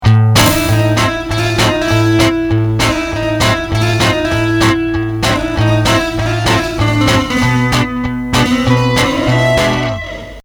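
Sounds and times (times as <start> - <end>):
swing music: 0.0 - 10.4.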